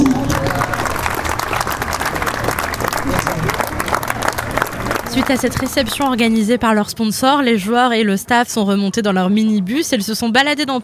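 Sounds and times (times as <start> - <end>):
audience applause: 0.0 - 6.5
faint murmur of crowd voices: 0.0 - 6.7
speech: 5.2 - 10.8.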